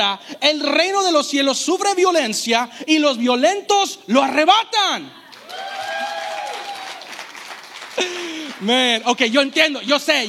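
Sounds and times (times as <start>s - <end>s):
speech: 0.0s - 5.2s, 8.0s - 10.2s
audience applauding: 5.3s - 9.7s.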